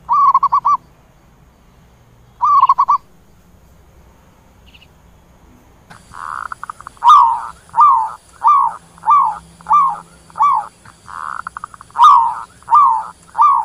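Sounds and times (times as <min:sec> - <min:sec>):
zebra dove cooing: 0:00.1 - 0:00.8, 0:02.4 - 0:03.0, 0:05.9 - 0:13.6.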